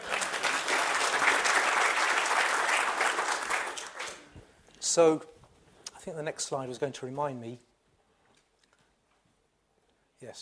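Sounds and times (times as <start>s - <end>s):
audience applause: 0.0s - 4.3s
speech: 5.0s - 5.3s, 6.0s - 7.7s, 10.2s - 10.3s.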